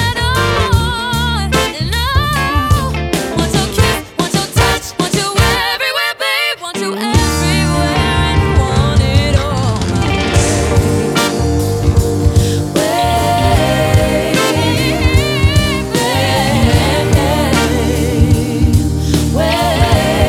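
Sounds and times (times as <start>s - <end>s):
R&B soul music: 0.0s - 20.2s.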